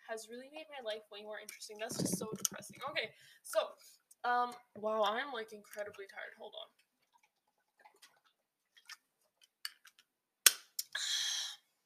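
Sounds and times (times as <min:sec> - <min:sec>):
speech: 0:00.2 - 0:06.8
person drinking water: 0:01.9 - 0:02.9, 0:07.0 - 0:09.0.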